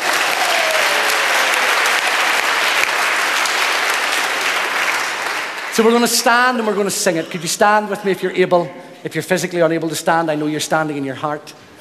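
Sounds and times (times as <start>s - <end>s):
crowd applauding: 0.0s - 7.0s
speech: 5.8s - 11.7s.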